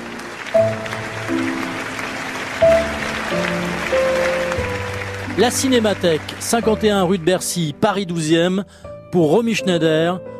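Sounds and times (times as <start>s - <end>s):
audience standing applause: 0.0s - 7.5s
speech: 5.4s - 10.3s.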